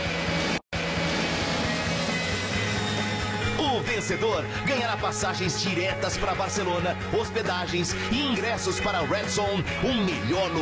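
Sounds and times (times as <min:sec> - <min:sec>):
airplane flying past with loud engine roar: 0:00.0 - 0:06.0
speech: 0:03.8 - 0:10.5.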